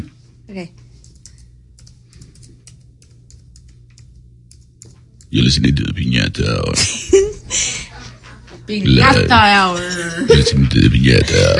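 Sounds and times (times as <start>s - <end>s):
speech: 0.0s - 0.9s, 5.3s - 7.7s, 8.7s - 11.5s
fingers typing on a computer keyboard: 1.0s - 5.3s.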